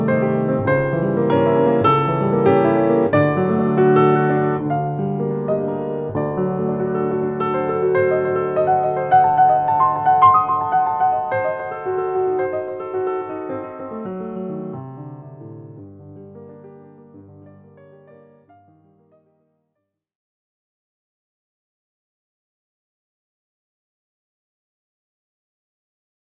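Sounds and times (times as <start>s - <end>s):
allegro assai melody in A-flat major: 0.1s - 15.7s.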